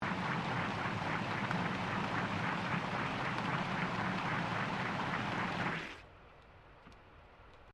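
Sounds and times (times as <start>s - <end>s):
large restaurant boat engine shutting down recorded underwater: 0.0s - 6.0s.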